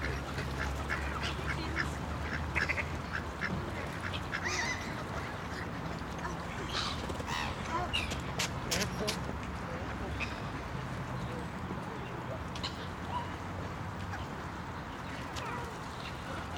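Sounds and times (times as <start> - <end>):
park soundscape: 0.0 - 16.5.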